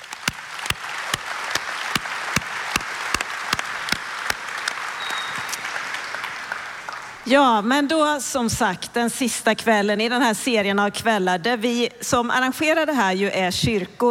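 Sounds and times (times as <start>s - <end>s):
audience applause: 0.0s - 7.2s
speech: 7.3s - 14.0s.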